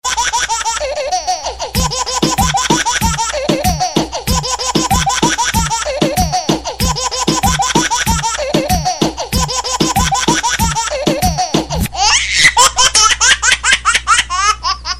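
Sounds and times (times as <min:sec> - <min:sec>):
child laughing: 0:00.0 - 0:14.9.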